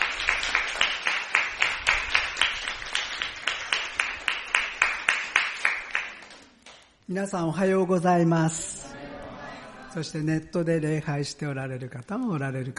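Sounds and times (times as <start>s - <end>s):
audience applause welcoming speaker: 0.0s - 6.9s
speech: 7.1s - 8.8s, 10.0s - 12.7s.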